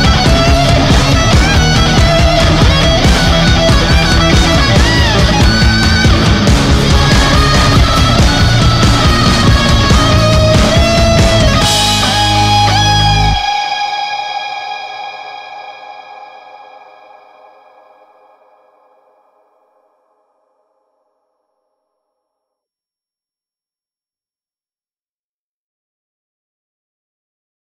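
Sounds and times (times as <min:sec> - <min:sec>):
solo guitar: 0:00.0 - 0:17.4.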